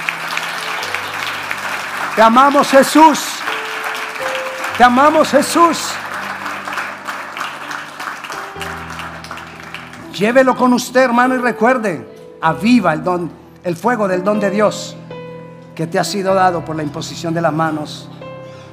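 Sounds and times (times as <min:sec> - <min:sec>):
audience applause: 0:00.0 - 0:10.4
speech: 0:02.2 - 0:03.3, 0:04.8 - 0:05.9, 0:10.2 - 0:15.0, 0:15.8 - 0:18.2.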